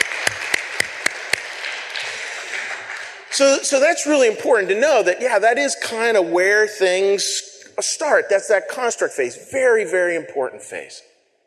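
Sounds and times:
round of applause: 0:00.0 - 0:03.6
speech: 0:03.4 - 0:11.1.

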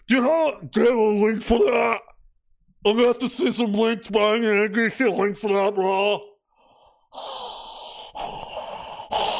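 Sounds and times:
speech: 0:00.1 - 0:02.1, 0:02.8 - 0:06.3, 0:07.1 - 0:07.6
person imitating heavy breathing while waiting for a reply: 0:06.6 - 0:09.3.

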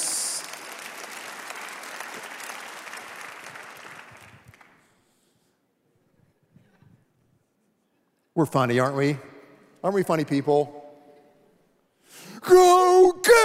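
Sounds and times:
audience clapping: 0:00.0 - 0:05.2
speech: 0:08.4 - 0:10.8, 0:12.5 - 0:13.4.

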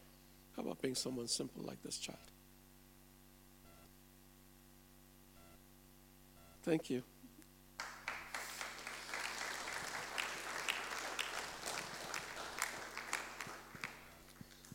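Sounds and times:
speech: 0:00.6 - 0:02.4, 0:06.6 - 0:07.2
audience applause: 0:07.8 - 0:14.7.

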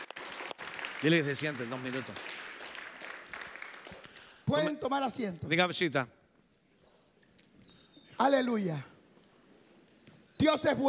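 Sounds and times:
audience applause: 0:00.0 - 0:04.4
speech: 0:01.0 - 0:02.4, 0:04.5 - 0:06.2, 0:08.2 - 0:08.9, 0:10.4 - 0:10.8.

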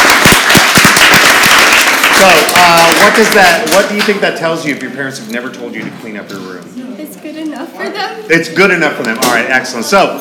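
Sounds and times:
studio audience applause: 0:00.0 - 0:04.2
speech: 0:02.2 - 0:10.2.

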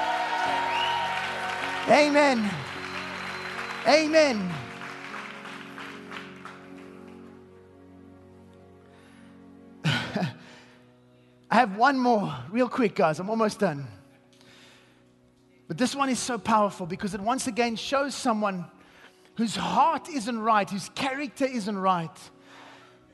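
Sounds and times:
audience clapping: 0:00.0 - 0:07.5
speech: 0:01.9 - 0:02.7, 0:03.8 - 0:04.6, 0:11.6 - 0:14.0, 0:15.7 - 0:18.8, 0:19.4 - 0:22.4.

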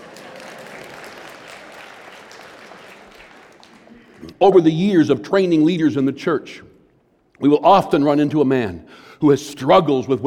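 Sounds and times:
audience applause: 0:00.0 - 0:04.4
speech: 0:04.2 - 0:06.7, 0:07.4 - 0:10.2.

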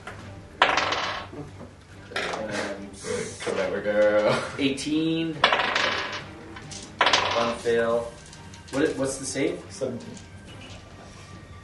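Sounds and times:
dice rolling on a hard tabletop: 0:00.6 - 0:01.4, 0:02.1 - 0:02.5, 0:05.4 - 0:08.9
speech: 0:03.7 - 0:05.7, 0:07.4 - 0:10.3.

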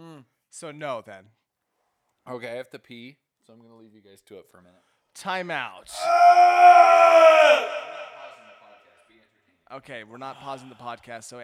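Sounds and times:
speech: 0:00.5 - 0:01.4, 0:02.3 - 0:08.0, 0:09.7 - 0:11.4
person yawning: 0:06.0 - 0:08.7.

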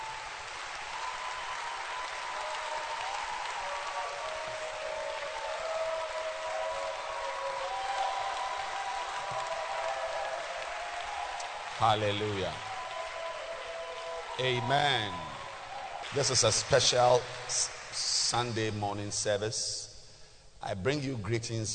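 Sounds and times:
audience clapping hands: 0:00.0 - 0:19.3
speech: 0:11.8 - 0:12.7, 0:14.4 - 0:15.3, 0:16.1 - 0:19.9, 0:20.6 - 0:21.7.

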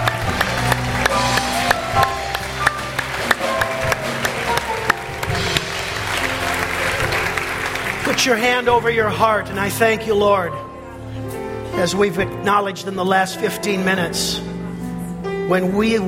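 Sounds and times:
audience clapping: 0:00.0 - 0:09.1
speech: 0:08.2 - 0:10.7, 0:11.8 - 0:14.5, 0:15.5 - 0:16.0.

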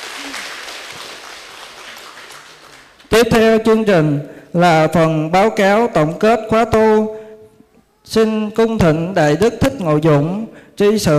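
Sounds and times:
audience applause: 0:00.0 - 0:03.1
speech: 0:03.2 - 0:07.2, 0:08.1 - 0:11.1.

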